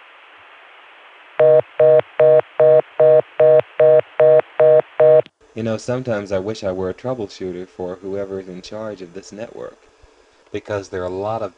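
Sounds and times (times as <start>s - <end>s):
telephone dialing tones on a Chicago dial tone line: 1.4s - 5.3s
speech: 5.6s - 9.9s, 10.5s - 11.5s.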